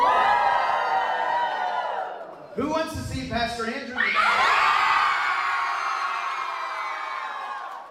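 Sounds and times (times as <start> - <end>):
crowd cheering: 0.0 - 3.1, 3.9 - 7.9
man speaking over loudspeaker: 2.6 - 4.2
speech: 2.6 - 4.5.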